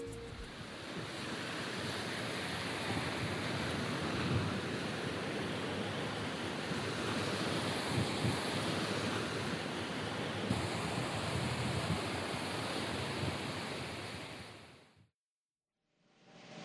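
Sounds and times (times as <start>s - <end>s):
ocean waves and surf: 0.2s - 14.9s.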